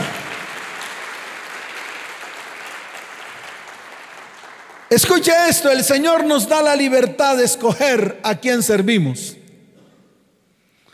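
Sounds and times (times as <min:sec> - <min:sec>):
audience applause: 0:00.0 - 0:05.2
speech: 0:04.9 - 0:09.4.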